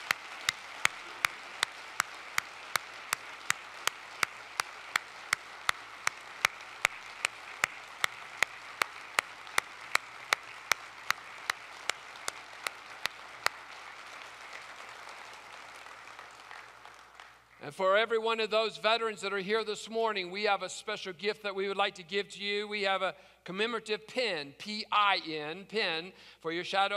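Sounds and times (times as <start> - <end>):
audience applauding veterans: 0.0 - 17.6
speech: 17.7 - 26.9.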